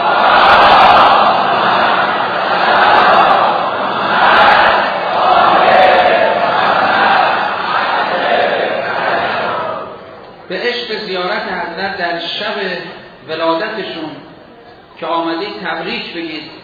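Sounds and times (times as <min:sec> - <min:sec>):
roar of a dense crowd of pilgrims at the Imam Reza shrine: 0:00.0 - 0:10.2
speech: 0:12.3 - 0:14.1, 0:15.3 - 0:16.5.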